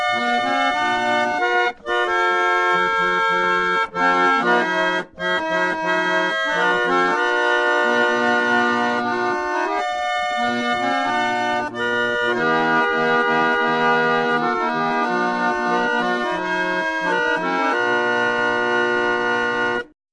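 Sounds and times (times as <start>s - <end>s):
roller organ: 0.0s - 19.9s.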